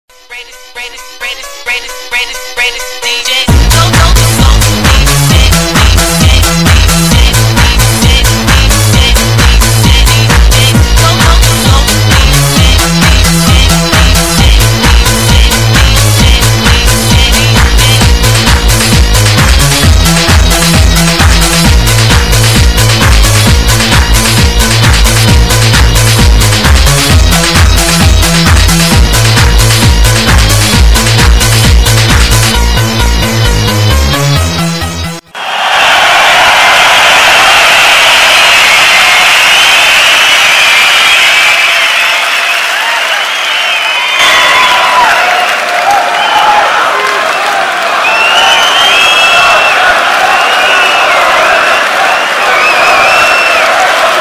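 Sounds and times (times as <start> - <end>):
dance music: 0.1 - 54.2.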